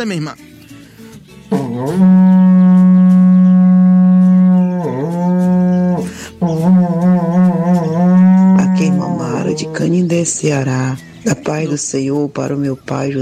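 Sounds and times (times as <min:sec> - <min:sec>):
speech: 0:00.0 - 0:00.5, 0:01.8 - 0:02.7, 0:09.6 - 0:13.2
berrante cattle-herding horn being blown: 0:01.5 - 0:10.3.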